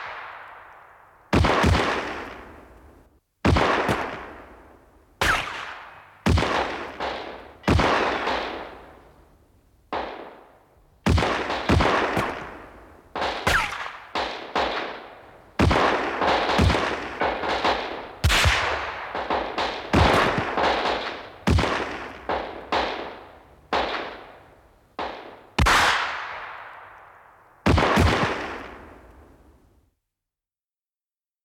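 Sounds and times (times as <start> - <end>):
gunfight: 1.3 - 2.7, 3.4 - 4.6, 5.2 - 8.9, 9.9 - 24.4, 25.0 - 26.8, 27.7 - 29.1.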